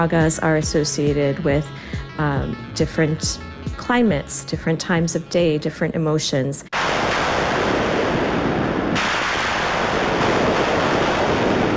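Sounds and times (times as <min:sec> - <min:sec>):
speech: 0:00.0 - 0:06.7
synthesized thunder: 0:06.8 - 0:11.7.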